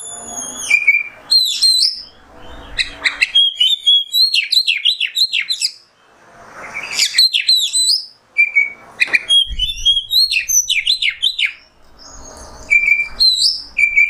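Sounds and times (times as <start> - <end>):
Oriental magpie-robin singing: 0.0 - 5.9, 6.6 - 14.0.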